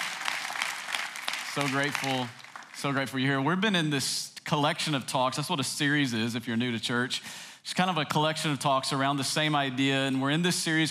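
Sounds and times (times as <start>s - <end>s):
church congregation applauding: 0.0s - 3.2s
speech: 1.6s - 10.9s.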